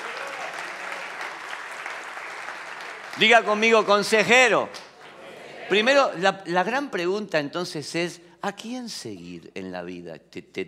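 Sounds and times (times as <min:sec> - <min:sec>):
audience applauding: 0:00.0 - 0:05.9
speech: 0:03.2 - 0:04.8, 0:05.7 - 0:10.6.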